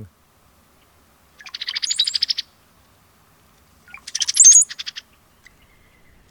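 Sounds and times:
Brown-headed Cowbird calling in North America: 0.8 - 2.7, 3.8 - 6.2.

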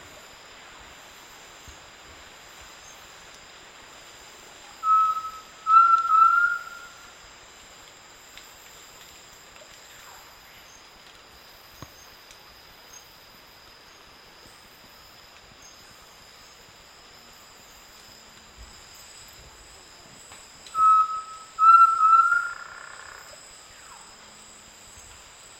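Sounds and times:
Undulated Tinamou in the South American Eastern Lowlands: 4.8 - 6.9, 20.8 - 23.0.

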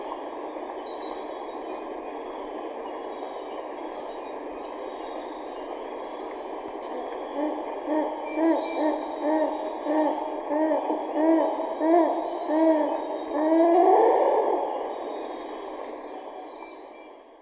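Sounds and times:
Rufescent tiger heron hooting in Ecuador: 7.3 - 15.0.

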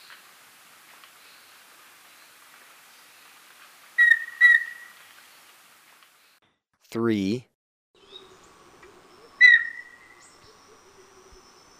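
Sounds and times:
rufous-breasted antthrush call: 4.0 - 5.0, 9.2 - 11.7
speech: 6.9 - 7.5.

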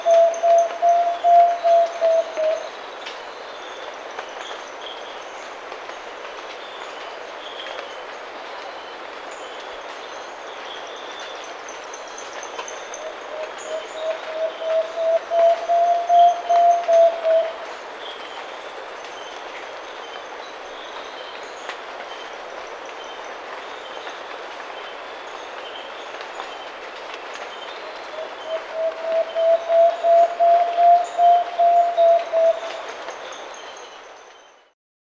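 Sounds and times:
Plain-backed antpitta calling in South America: 0.0 - 2.7, 12.5 - 17.7, 27.9 - 33.0.

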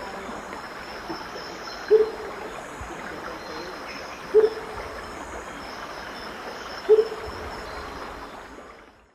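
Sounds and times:
Baryphthengus martii hoot song: 1.8 - 2.2, 4.3 - 4.7, 6.8 - 7.2.

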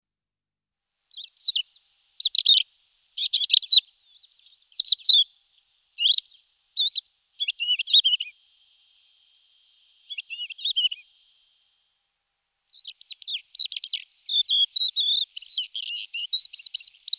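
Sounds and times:
Crested lark Galerida cristata song of warbles and whistles: 1.1 - 2.6, 3.2 - 5.3, 6.0 - 11.6, 12.7 - 17.1.

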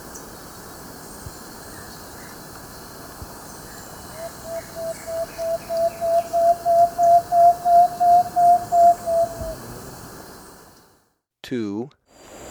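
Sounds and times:
plain-backed antpitta singing whistled notes in Ecuador: 3.7 - 9.8.

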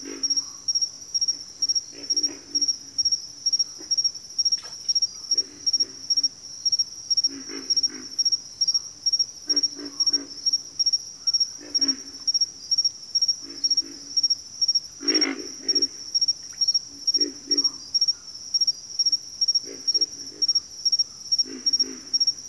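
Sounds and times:
pig frog grunting: 0.0 - 0.5, 1.9 - 2.9, 7.2 - 8.2, 9.5 - 10.6, 11.6 - 12.3, 15.0 - 16.2, 16.9 - 17.8, 19.6 - 20.6, 21.4 - 22.4
cricket trill: 0.0 - 22.4.

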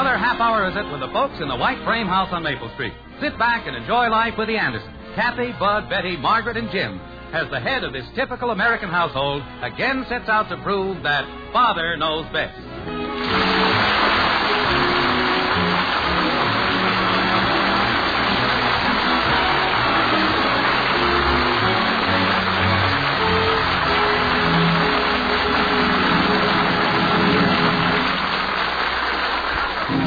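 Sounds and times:
speech: 0.0 - 13.5
steady rain downpour in Springfield: 13.2 - 29.9.

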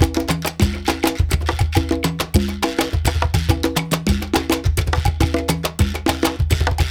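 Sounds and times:
Latin percussion: 0.0 - 6.8.

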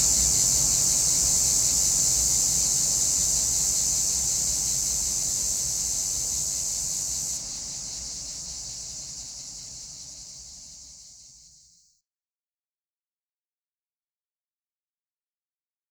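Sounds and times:
cicadas buzzing in rapid regular pulses: 0.0 - 11.7.

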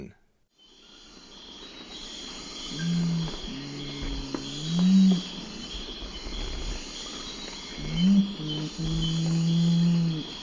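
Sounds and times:
Nocturnal Curassow hooting in the eastern lowlands of South America: 2.7 - 6.7, 7.7 - 10.4.

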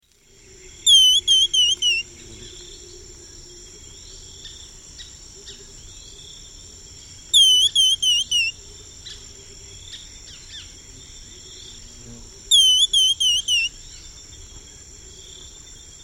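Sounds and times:
Cinnamon becard song of thin high whistled notes: 0.9 - 2.0, 7.4 - 8.5, 12.5 - 13.7.

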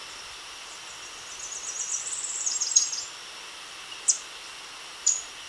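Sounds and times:
Tropical Parula singing in Ecuador: 0.1 - 3.2, 3.9 - 4.3, 5.0 - 5.3.

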